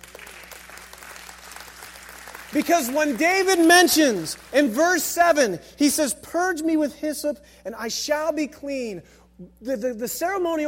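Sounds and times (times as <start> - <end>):
audience clapping: 0.0 - 5.3
speech: 2.5 - 10.6.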